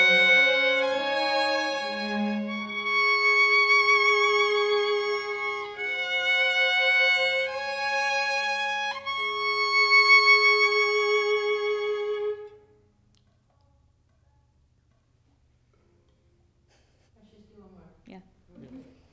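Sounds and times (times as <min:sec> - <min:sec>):
violin: 0:00.0 - 0:12.8.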